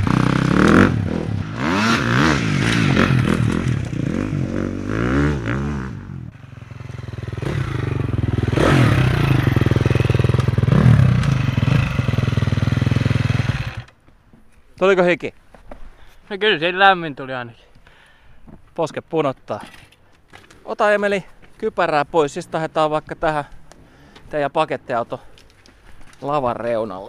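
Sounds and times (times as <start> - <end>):
motorbike with an electric starter revving and riding off for a warm-up lap: 0.0 - 13.9
speech: 14.8 - 15.4, 16.3 - 17.7, 18.8 - 19.8, 20.7 - 23.6, 24.3 - 25.3, 26.2 - 27.0.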